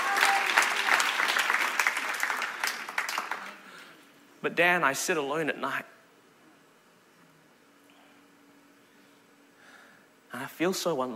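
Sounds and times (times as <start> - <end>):
audience applause: 0.0 - 3.7
speech: 4.4 - 6.0, 10.4 - 11.1.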